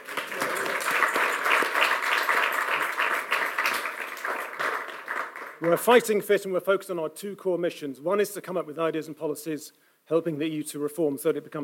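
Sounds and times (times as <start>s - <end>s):
audience round of applause: 0.0s - 6.0s
speech: 5.6s - 11.6s.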